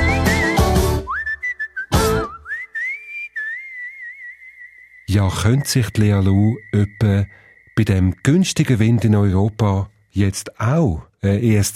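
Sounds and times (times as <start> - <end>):
whistled melody ringtone: 0.0 - 9.2
speech: 5.2 - 11.7.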